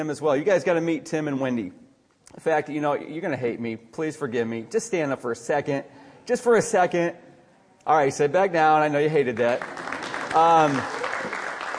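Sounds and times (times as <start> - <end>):
speech: 0.0 - 7.2, 7.8 - 11.0
audience applause: 9.4 - 11.7.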